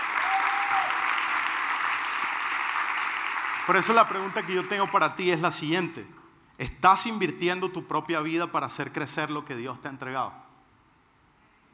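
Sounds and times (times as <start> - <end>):
audience applause: 0.0 - 5.4
speech: 3.7 - 10.4.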